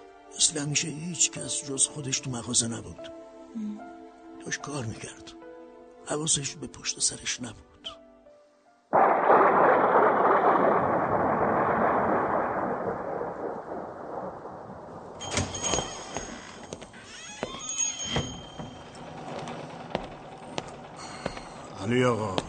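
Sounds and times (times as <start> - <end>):
speech: 0.4 - 5.4, 6.0 - 8.0
heavy rain: 8.9 - 16.9, 18.9 - 22.4
thunder rumbling: 8.9 - 16.9, 18.8 - 22.4.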